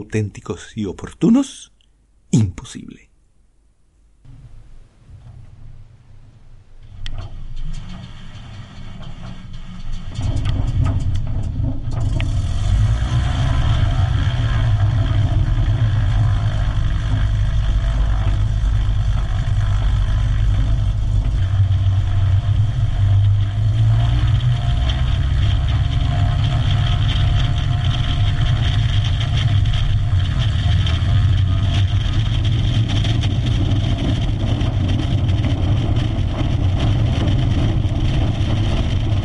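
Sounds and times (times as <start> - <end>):
speech: 0.0 - 1.7, 2.3 - 3.1
Cessna 185 amphibious floatplane engine on its takeoff run across water: 10.1 - 39.2.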